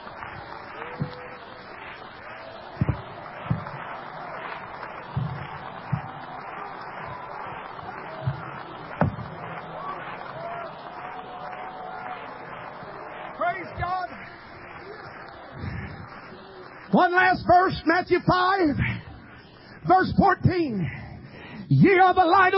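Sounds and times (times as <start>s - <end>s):
audience clapping hands: 0.0s - 22.5s
speech: 17.0s - 18.9s, 19.9s - 21.0s, 21.7s - 22.5s.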